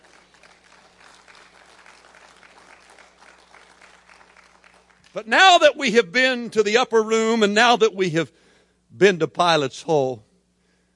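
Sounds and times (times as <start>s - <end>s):
audience clapping: 0.0s - 5.3s
speech: 5.2s - 10.2s.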